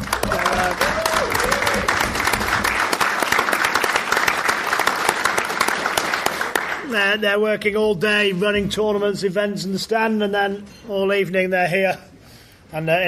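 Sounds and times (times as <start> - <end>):
audience applause: 0.0 - 6.9
speech: 7.2 - 12.1, 12.7 - 13.0.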